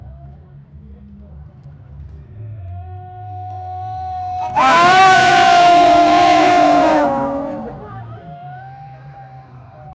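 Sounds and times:
go-karts racing: 4.4 - 8.2.

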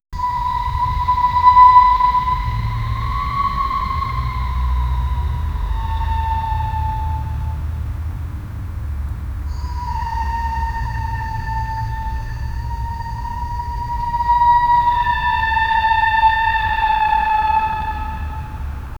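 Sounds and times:
scary eerie outdoor ambience of an abandoned place: 0.2 - 18.9.

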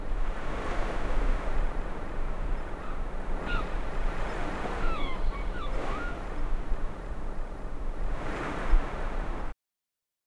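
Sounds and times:
distant waves in a harbor: 0.0 - 9.5
seagulls in a harbor: 2.7 - 6.5.

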